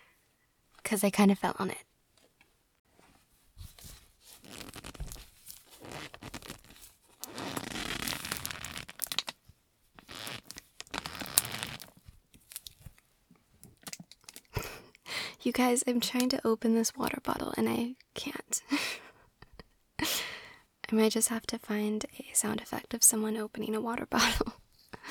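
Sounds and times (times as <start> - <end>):
speech: 0.9 - 1.9, 15.5 - 18.9, 20.9 - 24.6
jacket rustling as sleeping bag sound effect: 2.9 - 9.4, 10.0 - 13.0.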